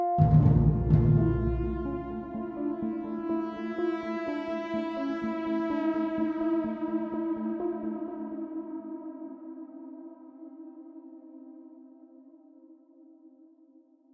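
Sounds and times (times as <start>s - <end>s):
string instrument: 0.2s - 8.4s.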